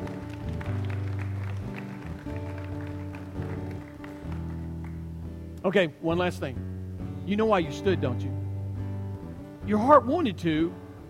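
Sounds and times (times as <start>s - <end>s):
audience applause: 0.0s - 5.0s
speech: 5.6s - 6.7s, 7.3s - 8.4s, 9.7s - 10.8s.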